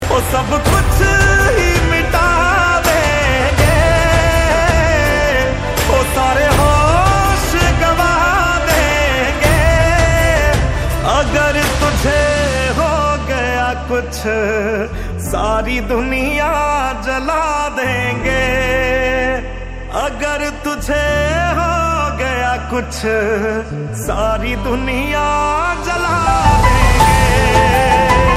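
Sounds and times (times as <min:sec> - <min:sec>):
emotional song: 0:00.0 - 0:28.3.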